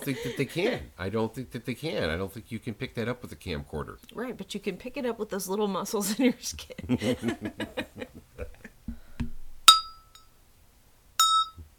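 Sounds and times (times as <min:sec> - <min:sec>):
laughter: 0:00.0 - 0:00.8, 0:06.0 - 0:08.8
speech: 0:00.0 - 0:08.1
small bell struck with bright high metallic ring: 0:11.2 - 0:11.6.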